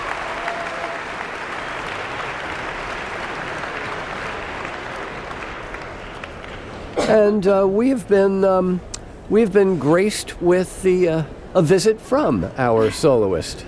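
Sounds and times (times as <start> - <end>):
Carnegie Hall concert audience applauding to call the soloist back: 0.0 - 6.6
speech: 7.1 - 13.6.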